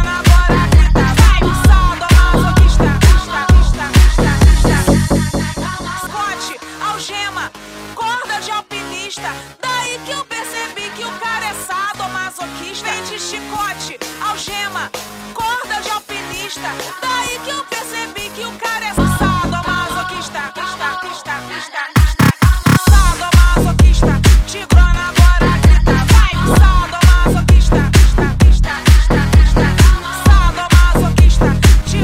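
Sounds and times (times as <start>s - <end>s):
funk music: 0.0s - 6.5s, 18.9s - 20.6s, 22.0s - 32.0s.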